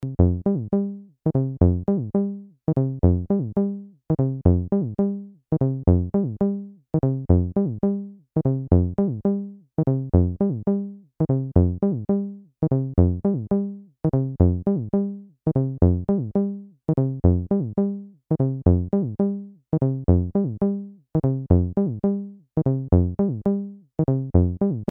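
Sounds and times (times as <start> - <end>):
TD-3 bass synth default patch: 0.0 - 24.9.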